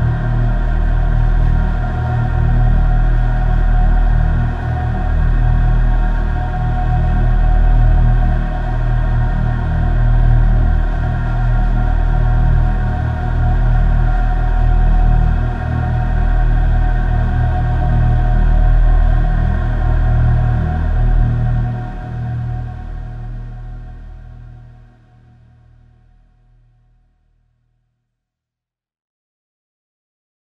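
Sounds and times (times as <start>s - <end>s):
doom drone: 0.0s - 25.2s.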